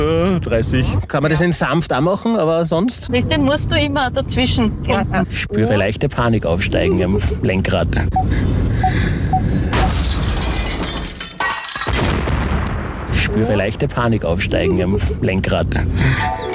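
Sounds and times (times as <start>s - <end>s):
speech: 0.0s - 9.2s, 13.4s - 16.4s
explosion sound effect: 9.7s - 11.2s, 11.8s - 15.2s
car crash sound effect: 9.7s - 13.3s.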